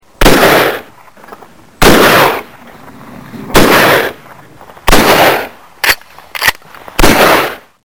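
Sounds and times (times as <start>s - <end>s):
shotgun blasts: 0.2s - 0.9s, 1.8s - 2.5s, 3.3s - 4.2s, 4.8s - 7.7s.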